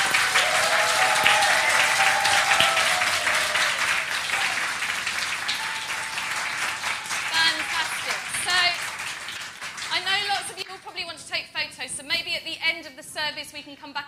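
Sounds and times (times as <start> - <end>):
audience applause: 0.0 - 10.6.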